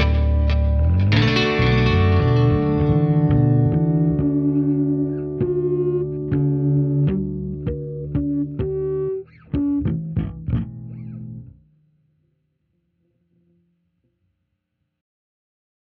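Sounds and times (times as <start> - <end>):
double drop D blues guitar backing: 0.0 - 11.8.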